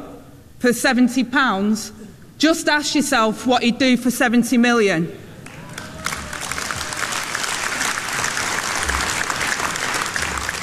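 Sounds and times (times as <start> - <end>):
speech: 0.6 - 5.2
tepid audience applause: 5.4 - 10.6.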